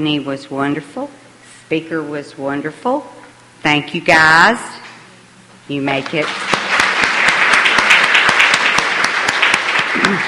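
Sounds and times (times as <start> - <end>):
speech: 0.0 - 4.8, 5.7 - 6.5
crowd clapping: 6.0 - 10.2.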